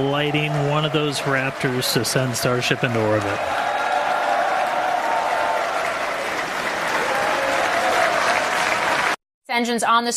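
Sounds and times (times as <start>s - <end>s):
speech: 0.0s - 3.7s, 9.6s - 10.1s
huge applause at SpaceX mission control at Starbase: 0.0s - 9.2s.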